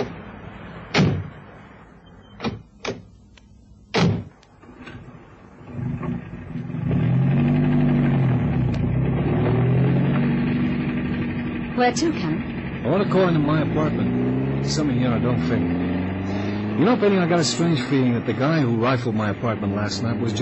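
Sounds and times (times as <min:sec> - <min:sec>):
car engine droning: 0:00.0 - 0:20.4
car doors slamming: 0:00.9 - 0:01.4, 0:02.4 - 0:03.1, 0:03.9 - 0:05.0
speech: 0:11.8 - 0:12.3, 0:12.9 - 0:15.8, 0:16.8 - 0:20.4.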